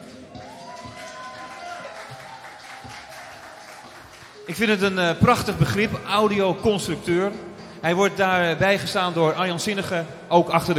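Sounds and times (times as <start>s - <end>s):
audience applause: 0.0s - 4.6s
speech: 4.5s - 10.7s.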